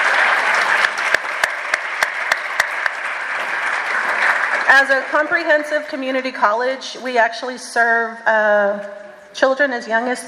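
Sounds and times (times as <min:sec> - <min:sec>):
audience applause for Texas Southmost College: 0:00.0 - 0:06.0
speech: 0:04.8 - 0:10.2.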